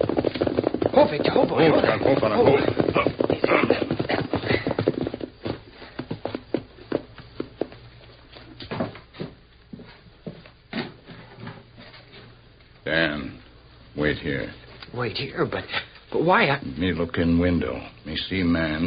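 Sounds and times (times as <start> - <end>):
horses ridden to the back of the house, hooves clip-clopping: 0.0 - 12.8
speech: 1.0 - 4.1, 14.2 - 18.8.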